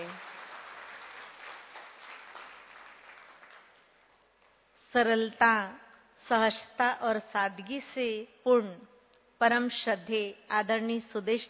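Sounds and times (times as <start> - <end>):
audience clapping: 0.0 - 4.1
speech: 4.9 - 11.4.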